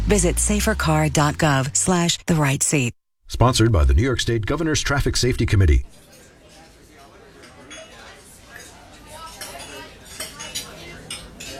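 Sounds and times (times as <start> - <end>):
speech: 0.1 - 6.1
dinner party dishes and cutlery clinking: 5.9 - 11.5
low murmur of indistinct chatter: 5.9 - 11.5.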